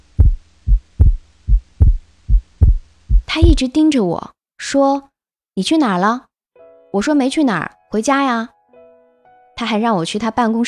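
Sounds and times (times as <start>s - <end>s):
faint hum: 0.0s - 3.6s
pounding heartbeat: 0.0s - 3.6s
speech: 3.4s - 6.3s, 6.9s - 8.6s, 9.6s - 10.6s.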